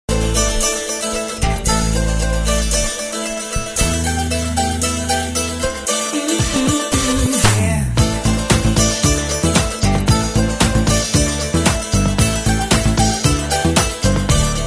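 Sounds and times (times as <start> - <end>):
rocking guitar: 0.1 - 14.6.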